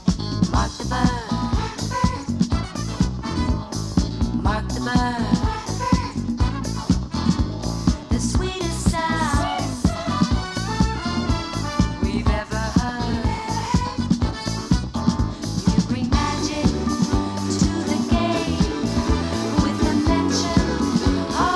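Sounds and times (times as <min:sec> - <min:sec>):
vocals: 0:00.3 - 0:21.5.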